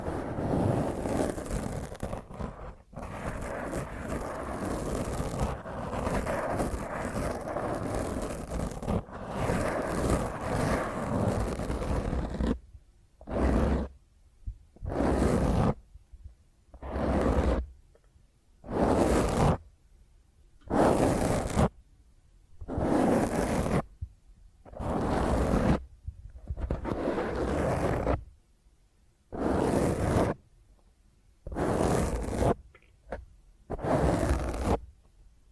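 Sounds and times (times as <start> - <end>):
fingernails scratching across a microphone: 0.0 - 12.6, 13.2 - 14.0, 14.8 - 15.8, 16.7 - 17.7, 18.6 - 19.6, 20.6 - 21.8, 22.6 - 23.9, 24.7 - 28.2, 29.3 - 30.4, 31.5 - 34.8.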